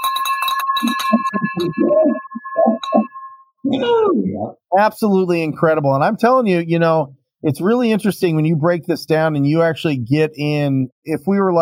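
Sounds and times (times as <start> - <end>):
bell being rung: 0.0 - 3.6
speech: 1.6 - 2.2, 3.8 - 11.6.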